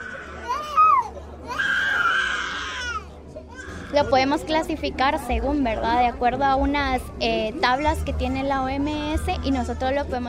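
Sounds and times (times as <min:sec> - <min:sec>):
small child wailing: 0:00.0 - 0:04.1
speech: 0:03.9 - 0:10.2.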